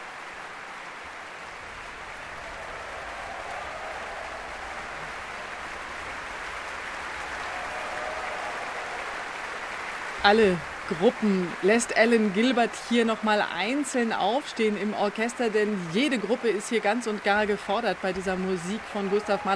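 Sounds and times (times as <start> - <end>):
large concert audience applause: 0.0 - 19.5
faint cheering: 1.5 - 11.6, 18.2 - 19.5
speech: 10.2 - 19.5.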